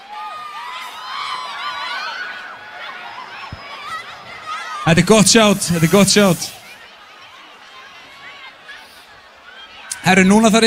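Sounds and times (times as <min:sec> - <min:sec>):
crowd cheering and whooping at a live evening show: 0:00.0 - 0:10.6
speech: 0:04.9 - 0:06.6, 0:10.1 - 0:10.6.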